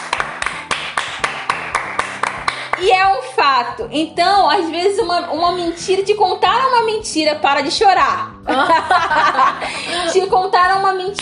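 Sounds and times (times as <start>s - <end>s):
clapping: 0.0s - 3.0s
speech: 2.8s - 11.2s
laughter: 8.5s - 10.3s.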